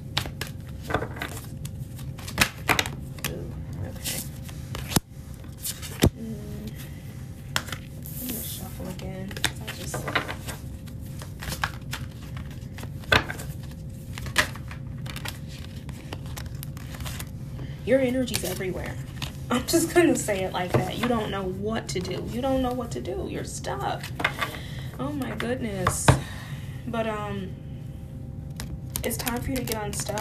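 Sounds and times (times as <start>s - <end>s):
tarot cards being shuffled and pulled: 0.1s - 6.2s, 7.5s - 17.3s, 28.5s - 30.2s
steady low hum: 1.4s - 30.2s
speech: 17.9s - 26.2s, 26.9s - 27.6s, 29.0s - 30.2s.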